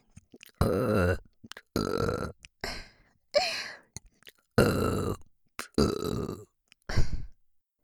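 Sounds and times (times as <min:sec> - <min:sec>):
small gulps and croaks: 0:00.0 - 0:02.7, 0:03.9 - 0:07.0
repeated long loud belches: 0:00.6 - 0:02.4, 0:04.6 - 0:06.5.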